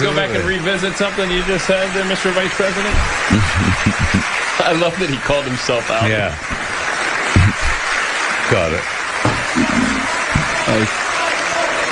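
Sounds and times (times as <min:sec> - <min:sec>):
speech: 0:00.0 - 0:06.6, 0:08.5 - 0:11.0
audience applauding: 0:00.0 - 0:11.8
laughter: 0:01.6 - 0:08.0.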